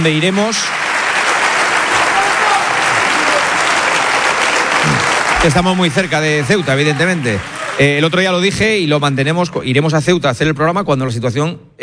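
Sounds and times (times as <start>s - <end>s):
speech: 0.0s - 0.8s, 5.4s - 11.8s
audience applause: 0.0s - 8.5s.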